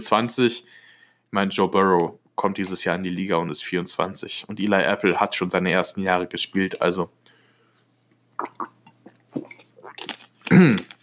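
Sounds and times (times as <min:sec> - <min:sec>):
speech: 0:00.0 - 0:07.2, 0:09.4 - 0:10.9
mouth clicks: 0:08.4 - 0:11.0
person sipping a drink: 0:08.4 - 0:11.0
person swallowing: 0:08.4 - 0:11.0.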